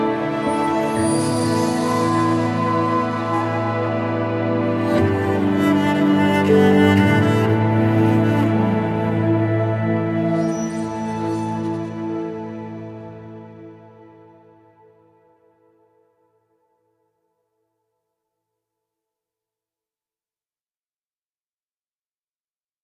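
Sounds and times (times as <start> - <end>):
zen ambient music: 0.0 - 16.7.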